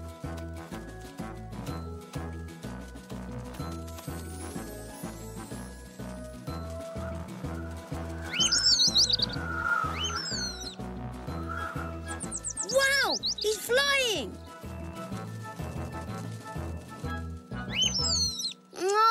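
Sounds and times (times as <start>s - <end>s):
music: 0.0s - 19.0s
baby bird chirping: 8.2s - 10.8s, 11.4s - 13.7s, 17.7s - 18.6s.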